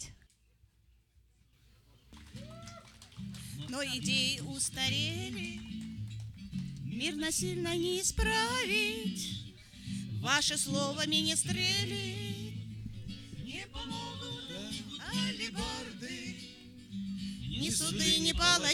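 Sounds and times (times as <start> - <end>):
music chorus intro: 2.2 - 18.7.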